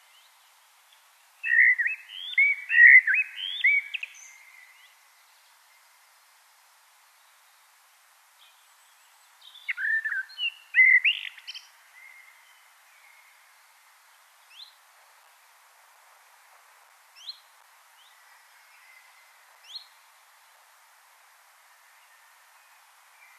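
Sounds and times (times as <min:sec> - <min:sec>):
common blackbird song: 0:00.0 - 0:06.2, 0:08.4 - 0:15.4, 0:17.2 - 0:20.2, 0:21.7 - 0:23.3.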